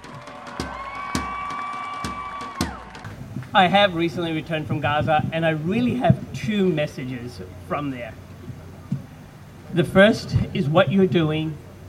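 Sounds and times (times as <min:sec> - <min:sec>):
audience applause: 0:00.0 - 0:03.6
speech: 0:03.5 - 0:08.2, 0:09.7 - 0:11.8.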